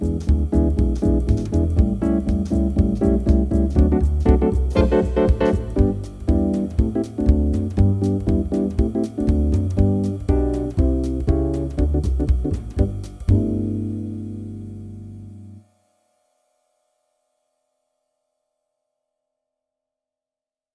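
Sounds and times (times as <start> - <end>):
rhythm changes in G: 0.0 - 15.6.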